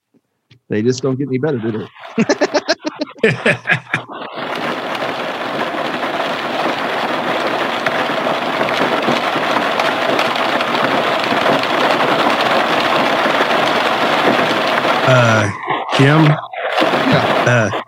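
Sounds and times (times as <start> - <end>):
speech: 0.7 - 2.6, 3.2 - 4.0, 15.1 - 16.5, 17.1 - 17.8
laughter: 1.4 - 4.3, 15.1 - 15.5, 17.1 - 17.8
rain on a car roof: 3.3 - 17.8.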